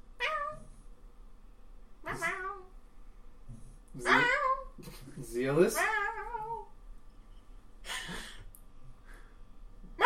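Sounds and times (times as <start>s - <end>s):
pet cat Leopard meowing: 0.2s - 0.7s, 2.0s - 2.7s, 4.0s - 4.7s, 5.7s - 6.7s
speech: 5.4s - 6.0s.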